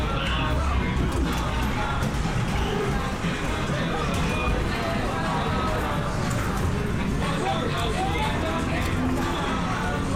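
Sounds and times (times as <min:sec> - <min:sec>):
lively crowd chatter in an English seaside town amusement arcade: 0:00.0 - 0:10.1.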